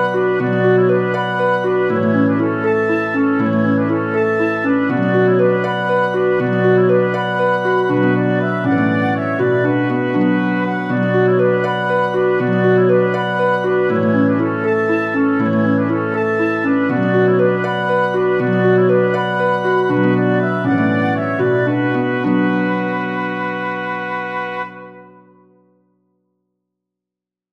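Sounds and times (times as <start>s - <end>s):
march for flute oboe and harp: 0.0s - 25.4s.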